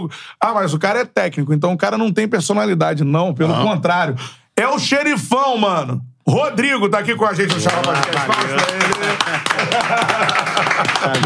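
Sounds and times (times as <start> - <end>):
speech: 0.0 - 11.2
applause: 7.5 - 11.2
laughter: 7.5 - 11.2.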